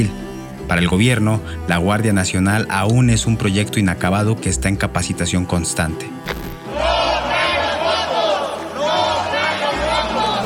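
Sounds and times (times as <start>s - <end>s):
speech: 0.0s - 6.9s
opposition lawmakers chanting: 6.6s - 10.4s.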